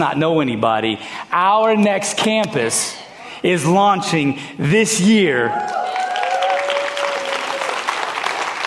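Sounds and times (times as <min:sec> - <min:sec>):
speech: 0:00.0 - 0:05.8
crowd clapping: 0:05.6 - 0:08.6.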